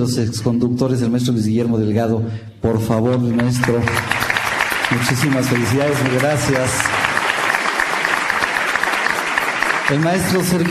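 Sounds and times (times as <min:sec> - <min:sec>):
speech: 0:00.0 - 0:04.2, 0:04.9 - 0:07.0, 0:09.9 - 0:10.6
auditorium audience applause at a 30th anniversary ceremony: 0:03.3 - 0:10.6.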